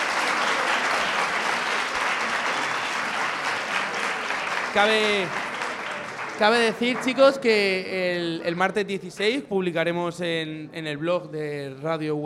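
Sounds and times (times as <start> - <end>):
audience applause: 0.0 - 7.8
speech: 4.7 - 5.5, 6.4 - 12.2.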